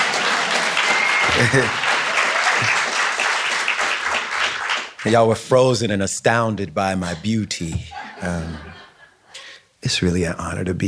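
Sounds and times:
crowd applause: 0.0s - 5.2s
laughter: 1.2s - 1.9s, 7.0s - 9.3s
speech: 1.4s - 1.8s, 5.0s - 8.7s, 9.8s - 10.8s.

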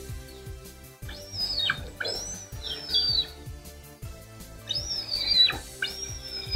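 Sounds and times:
raptor call: 1.1s - 3.4s, 4.7s - 6.5s.

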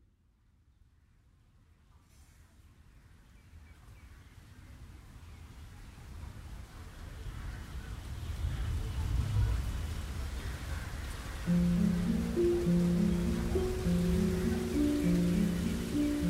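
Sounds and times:
rain falling: 4.4s - 16.2s
soft sustained musical tones: 11.5s - 16.2s.

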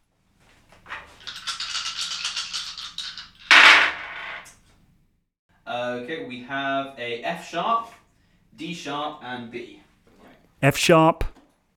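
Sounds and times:
three twelve-sided musicians' dice rolling: 1.3s - 4.4s
speech: 5.8s - 8.0s, 8.6s - 9.8s, 10.6s - 11.3s.

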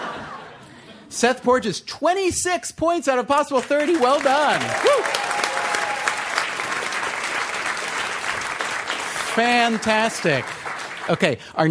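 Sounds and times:
speech: 1.1s - 5.4s, 9.4s - 11.6s
audience applause: 3.6s - 11.4s.

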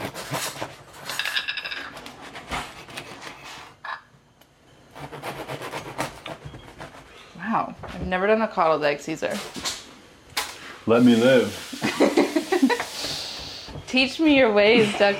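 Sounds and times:
knife cutting a crusty fresh sourdough loaf: 0.0s - 1.1s, 2.0s - 3.8s, 4.9s - 7.4s
speech: 7.6s - 9.6s, 10.9s - 11.8s, 14.0s - 15.1s.

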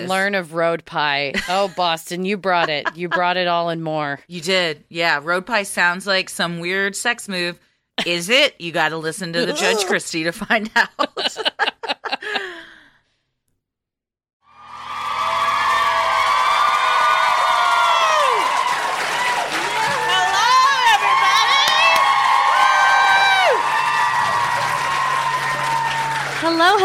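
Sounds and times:
speech: 0.0s - 12.6s
laughter: 2.5s - 3.4s, 9.4s - 10.0s, 10.6s - 12.6s
live audience cheering, whooping and applauding: 14.5s - 26.8s.

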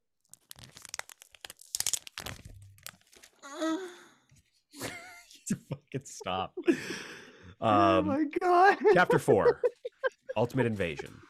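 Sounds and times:
plastic packaging crinkling and tearing as comic book Ultimate Invasion issue 4 is opened: 0.2s - 3.4s
laughter: 4.8s - 11.2s
speech: 5.5s - 9.7s, 10.4s - 11.2s.

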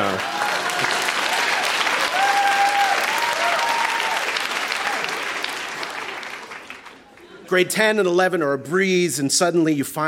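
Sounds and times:
audience applause: 0.0s - 7.4s
speech: 7.5s - 10.0s.

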